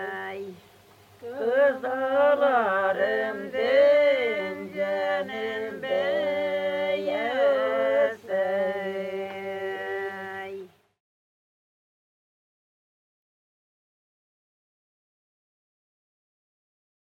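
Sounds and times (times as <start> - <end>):
polyphonic singing in Tatarstan: 0.0 - 10.7.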